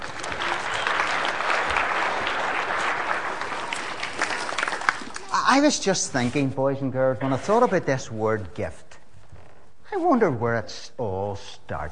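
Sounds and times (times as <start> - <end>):
audience clapping: 0.0 - 5.6
speech: 5.5 - 8.9, 9.9 - 11.9.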